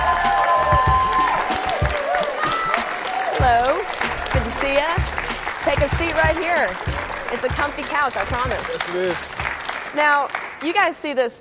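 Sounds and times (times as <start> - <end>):
crowd whooping: 0.0 - 4.6
crowd clapping and cheering: 0.0 - 11.2
speech: 5.7 - 11.4.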